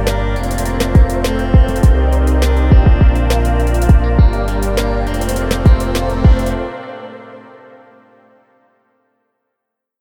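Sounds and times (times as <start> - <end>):
chill trap music: 0.0 - 7.5.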